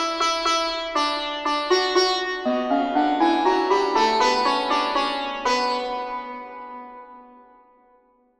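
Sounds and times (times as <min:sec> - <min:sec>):
santoor playing: 0:00.0 - 0:07.4.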